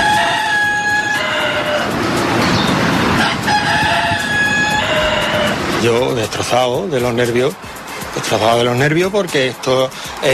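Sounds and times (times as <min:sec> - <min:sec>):
two neighbour's roosters crowing in Andalusia: 0:00.0 - 0:06.3
speech: 0:05.8 - 0:10.3.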